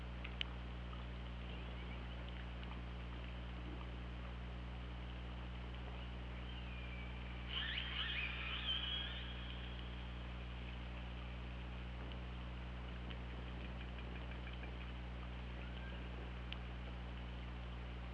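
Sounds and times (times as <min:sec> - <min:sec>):
hydrophone hum: 0:00.0 - 0:18.1
killer whale squealing underwater: 0:07.4 - 0:09.6.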